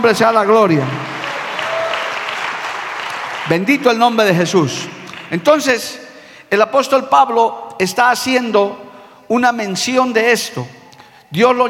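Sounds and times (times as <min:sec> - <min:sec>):
speech: 0:00.0 - 0:01.1, 0:03.4 - 0:11.6
audience applause: 0:00.8 - 0:03.7.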